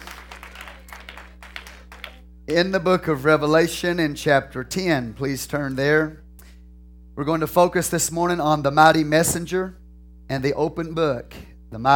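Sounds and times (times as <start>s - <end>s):
audience clapping: 0.0s - 2.3s
low electrical hum: 0.0s - 11.9s
speech: 2.5s - 6.2s, 7.2s - 11.9s.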